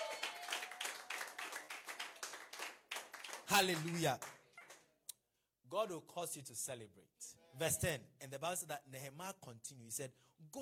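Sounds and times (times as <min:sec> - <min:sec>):
audience clapping: 0:00.0 - 0:04.9
speech: 0:03.5 - 0:04.4, 0:05.7 - 0:10.6.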